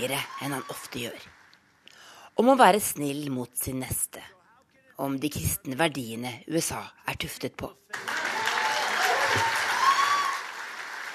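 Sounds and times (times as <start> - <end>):
speech: 0.0 - 1.4, 2.4 - 4.4, 5.0 - 8.1, 9.3 - 9.6
audience applause at a conference: 0.0 - 1.6, 7.9 - 11.1.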